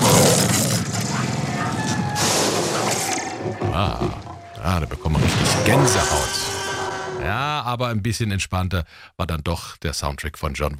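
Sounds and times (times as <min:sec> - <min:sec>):
T-Rex roar from mixed animal sounds: 0:00.0 - 0:02.2, 0:02.9 - 0:07.5
speech: 0:03.8 - 0:06.5, 0:07.2 - 0:10.7.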